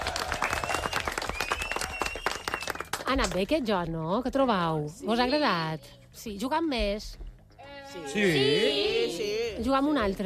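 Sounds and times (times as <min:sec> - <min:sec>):
group clapping: 0:00.0 - 0:03.6
speech: 0:03.1 - 0:07.2, 0:07.9 - 0:10.2.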